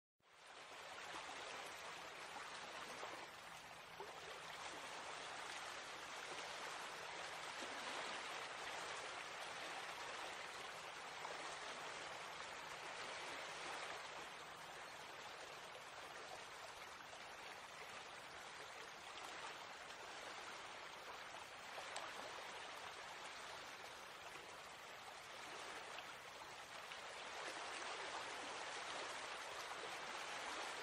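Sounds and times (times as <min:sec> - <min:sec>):
stream water flowing: 0:00.2 - 0:30.8.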